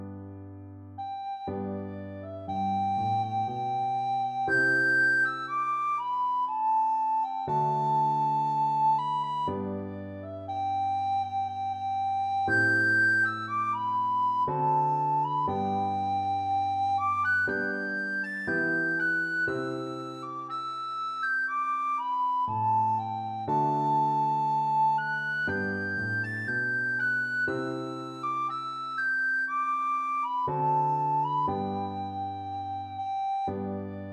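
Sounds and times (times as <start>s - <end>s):
recorder: 1.0s - 34.0s.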